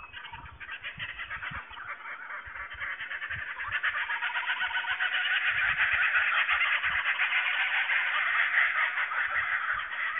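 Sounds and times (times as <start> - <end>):
several kookaburras laughing in Australia: 0.0 - 10.1.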